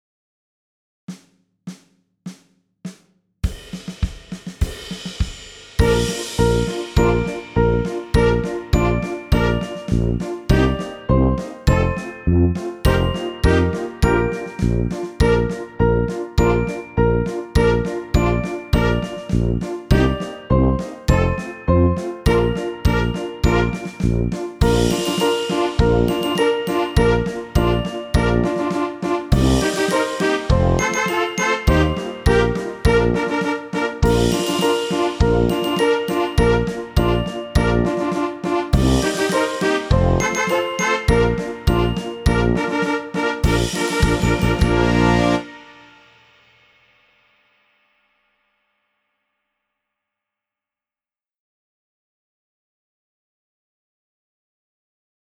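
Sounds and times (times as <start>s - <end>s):
trombone playing a slow march: 5.8s - 46.0s
trumpet playing a slow march: 5.8s - 46.4s.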